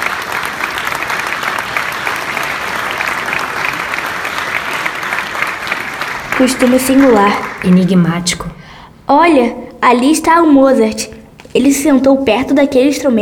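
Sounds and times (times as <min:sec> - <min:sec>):
audience applause at a concert: 0:00.0 - 0:08.6
speech: 0:06.4 - 0:13.1.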